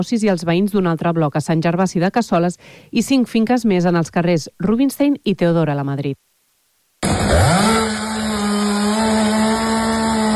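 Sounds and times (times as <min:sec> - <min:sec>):
speech: 0:00.0 - 0:06.2
chainsaw cutting fallen trees: 0:07.0 - 0:10.3.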